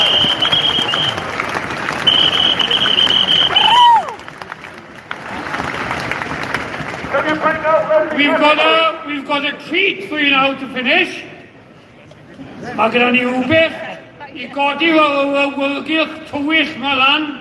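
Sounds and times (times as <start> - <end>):
audience clapping: 0.0 - 8.4
speech: 9.3 - 11.3, 12.8 - 13.8, 14.4 - 17.3.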